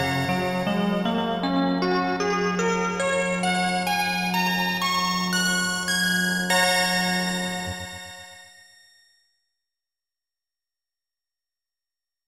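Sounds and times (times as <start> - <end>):
music: 0.0 - 9.4.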